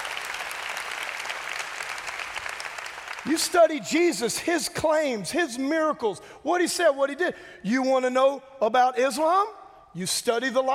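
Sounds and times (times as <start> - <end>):
audience applause: 0.0 - 3.6
speech: 3.2 - 10.7.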